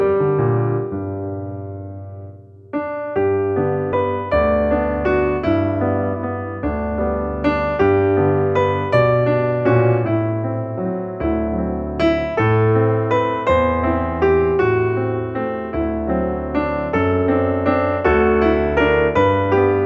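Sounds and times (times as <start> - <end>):
solo piano: 0.0 - 19.8.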